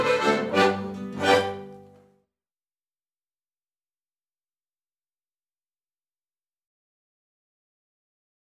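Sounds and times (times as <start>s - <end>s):
Boarischer folk dance music from Attergau: 0.0s - 2.0s.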